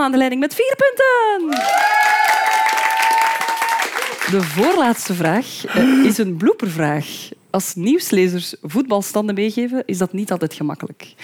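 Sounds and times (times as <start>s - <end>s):
speech: 0.0s - 2.5s, 4.3s - 11.2s
audience cheering: 1.4s - 5.2s.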